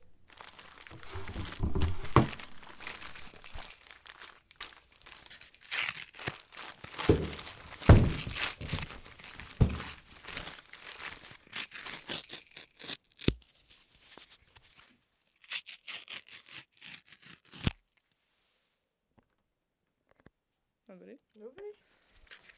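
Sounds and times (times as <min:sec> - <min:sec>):
decorating the Christmas tree ambience: 0:00.0 - 0:15.5.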